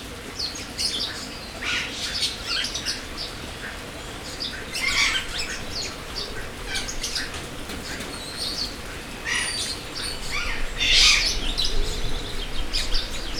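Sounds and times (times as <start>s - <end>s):
birds in an aviary chirping and tweeting: 0.4s - 13.3s.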